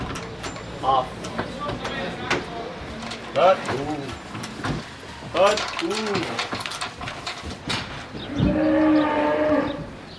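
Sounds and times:
speech: 0:00.8 - 0:01.3, 0:03.3 - 0:04.7, 0:05.3 - 0:06.6, 0:08.4 - 0:09.3
bull bellowing while being unloaded: 0:08.1 - 0:10.0.

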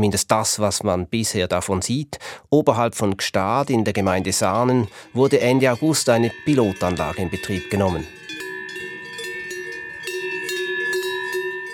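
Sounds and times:
speech: 0:00.0 - 0:08.2
bells of grazing Simmental cows clanking: 0:03.9 - 0:11.7.

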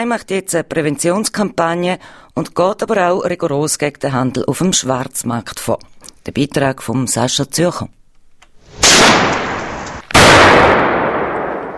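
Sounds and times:
speech: 0:00.0 - 0:08.0
firecracker explosions: 0:08.6 - 0:11.7.

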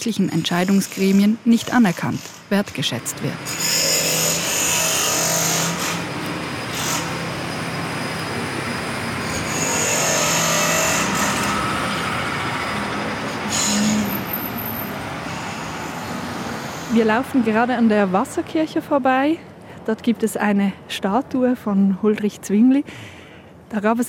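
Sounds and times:
speech: 0:00.0 - 0:03.8, 0:17.0 - 0:23.1, 0:23.7 - 0:24.0
high metallic squeals and whines: 0:00.0 - 0:17.8
construction-site mechanical rumble and clatter: 0:01.6 - 0:18.6.

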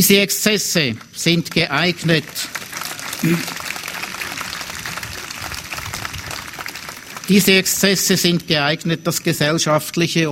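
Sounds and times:
speech: 0:00.0 - 0:02.6, 0:03.2 - 0:03.6, 0:07.3 - 0:10.3
applause: 0:01.0 - 0:08.4.

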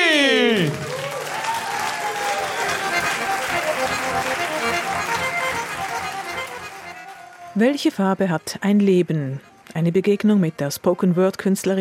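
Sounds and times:
roaring applause: 0:00.0 - 0:07.6
speech: 0:07.6 - 0:11.7.

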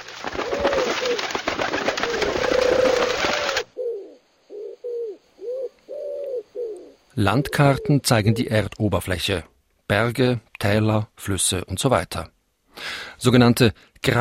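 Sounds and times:
pigeons flapping and shuffling: 0:00.0 - 0:03.7
homing pigeons cooing: 0:00.2 - 0:08.6
speech: 0:07.2 - 0:14.1.

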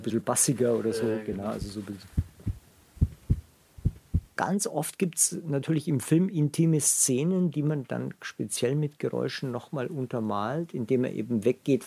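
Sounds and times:
speech: 0:00.0 - 0:02.3, 0:04.4 - 0:11.8
heartbeat heard through a stethoscope: 0:01.3 - 0:04.4.

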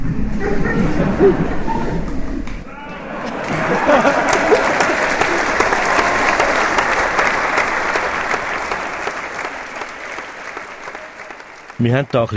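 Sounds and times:
laughter: 0:00.1 - 0:02.2, 0:02.8 - 0:11.4
speech: 0:01.2 - 0:01.6, 0:11.8 - 0:12.3
audience applause after opera performance: 0:03.0 - 0:12.3.

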